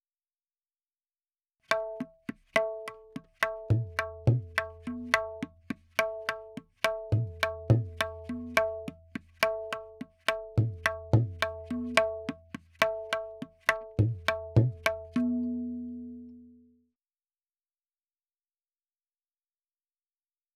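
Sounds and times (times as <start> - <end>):
tabla in 4/4 at 70: 1.7 - 16.6.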